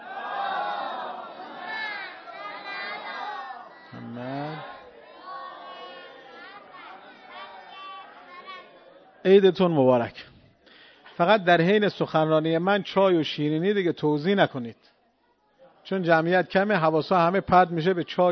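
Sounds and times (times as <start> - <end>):
crowd reciting salawat in unison: 0.0 - 9.2
speech: 9.2 - 10.3, 11.2 - 14.9, 15.9 - 18.3.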